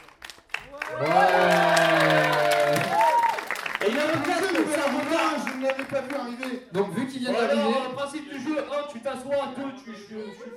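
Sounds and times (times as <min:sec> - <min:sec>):
applause welcoming a new arrival: 0:00.0 - 0:06.8
sustained voiced cheer: 0:00.7 - 0:03.6
speech: 0:00.9 - 0:01.4, 0:05.9 - 0:10.5.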